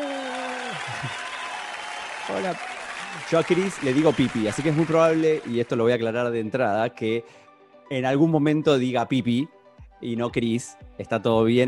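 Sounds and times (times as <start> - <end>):
applause: 0.0 - 5.8
speech: 2.3 - 11.6.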